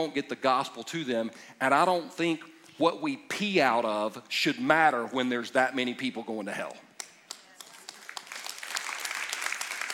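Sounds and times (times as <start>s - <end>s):
speech: 0.0s - 6.8s
audience clapping: 7.0s - 9.9s.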